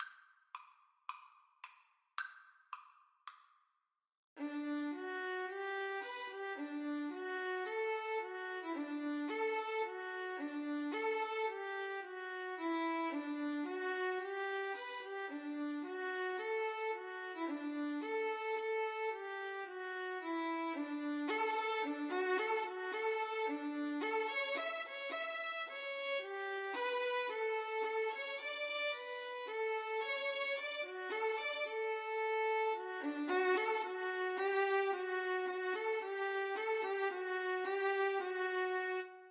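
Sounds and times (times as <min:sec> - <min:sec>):
violin duet: 0:04.4 - 0:39.2.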